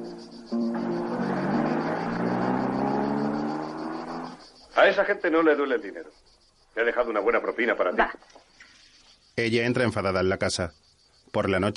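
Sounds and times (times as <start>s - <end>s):
convertible car engine driving away down the road in a 1957 film scene: 0.0s - 4.6s
insects chirring: 0.0s - 11.7s
speech: 4.8s - 8.5s, 9.4s - 11.7s.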